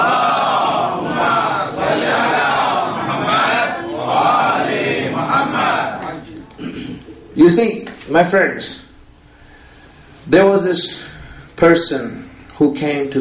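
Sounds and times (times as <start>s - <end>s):
audience loudly reciting salawat: 0.0s - 6.4s
speech: 7.4s - 8.8s, 10.3s - 13.1s.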